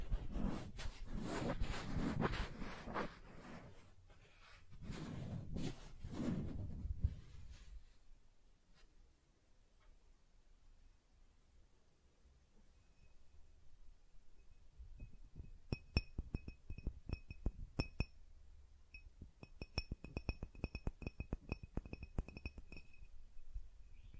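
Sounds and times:
soft breathy sweeping rubs across surfaces: 0.0 - 9.0
rapid little taps and scratches with a glassy tone: 15.0 - 18.1, 19.4 - 23.0.

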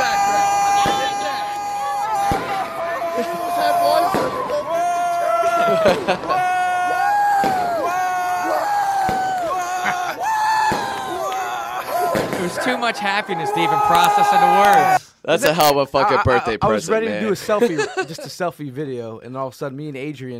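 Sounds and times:
laughter: 0.0 - 18.4
firework exploding: 0.1 - 6.4, 7.1 - 9.4, 10.5 - 11.2, 11.9 - 12.9
speech: 5.8 - 6.4, 12.6 - 20.3.

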